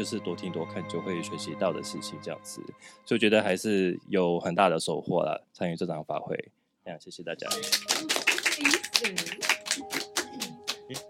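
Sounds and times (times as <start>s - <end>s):
speech: 0.0s - 9.6s
hands clapping: 7.4s - 11.0s
people talking and calling out: 7.4s - 11.0s.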